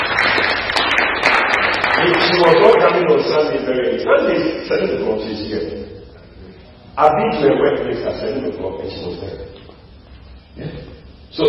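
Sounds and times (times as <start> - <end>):
audience clapping: 0.0 - 2.9
speech: 2.4 - 5.9, 7.0 - 9.5, 10.6 - 11.4.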